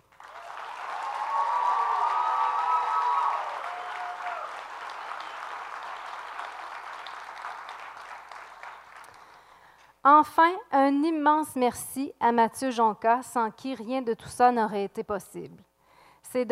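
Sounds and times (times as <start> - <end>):
audience applause: 0.0 - 9.5
speech: 10.0 - 15.7.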